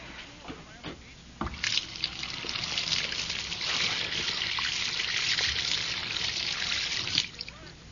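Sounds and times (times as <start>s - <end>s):
water flowing down a free-flowing sink drain: 1.4s - 7.6s.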